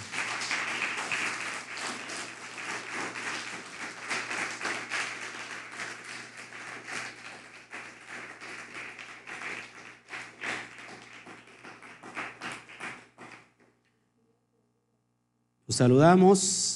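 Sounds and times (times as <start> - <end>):
crowd applauding: 0.0 - 13.5
speech: 15.7 - 16.7.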